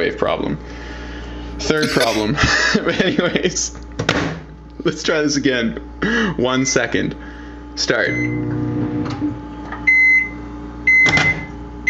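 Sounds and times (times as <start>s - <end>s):
speech: 0.0s - 0.9s, 1.6s - 4.2s, 4.8s - 8.8s
microwave oven beeping: 8.0s - 11.8s.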